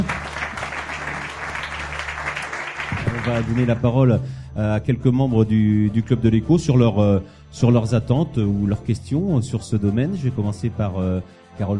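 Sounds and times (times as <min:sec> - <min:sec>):
audience applause: 0:00.0 - 0:03.8
speech: 0:03.2 - 0:11.7.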